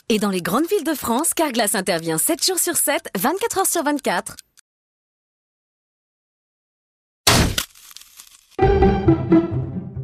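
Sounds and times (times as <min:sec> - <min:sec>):
speech: 0:00.1 - 0:04.4, 0:08.6 - 0:09.6
car windscreen glass cracking: 0:07.3 - 0:08.6.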